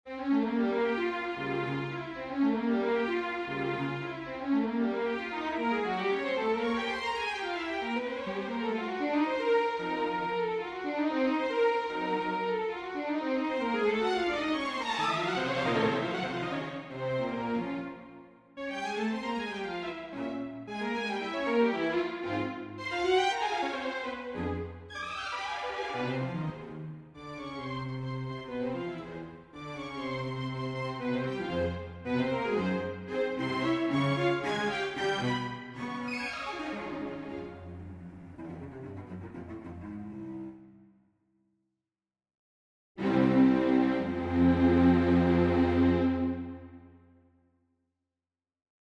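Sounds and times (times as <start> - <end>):
string quartet playing a prelude: 0.1 - 40.7, 43.0 - 46.8.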